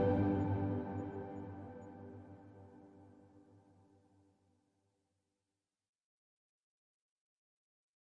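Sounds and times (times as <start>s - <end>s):
ambient music: 0.0s - 3.6s.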